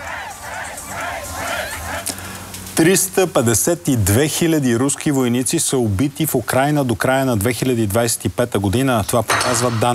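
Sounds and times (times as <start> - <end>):
crowd cheering and applauding: 0.0 - 2.1
speech: 2.8 - 9.9.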